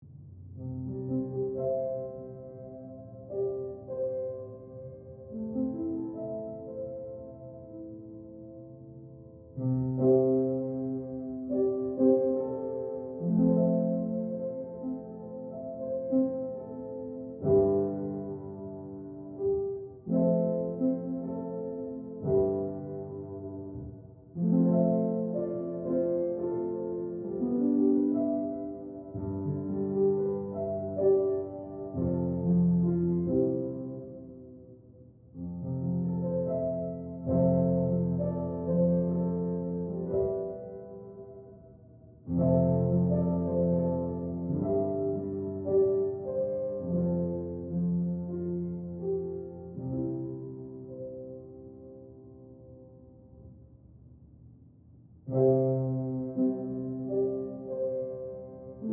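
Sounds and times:
distant piano: 0:00.0 - 0:53.9, 0:55.2 - 0:58.9.

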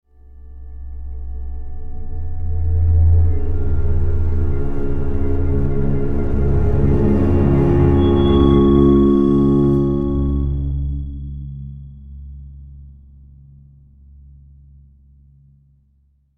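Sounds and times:
death music stinger: 0:00.5 - 0:11.2.

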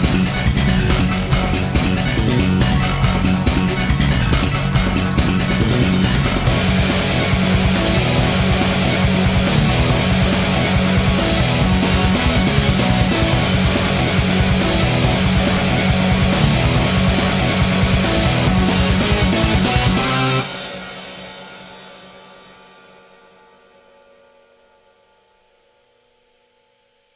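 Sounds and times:
boss battle game music: 0:00.0 - 0:20.8.

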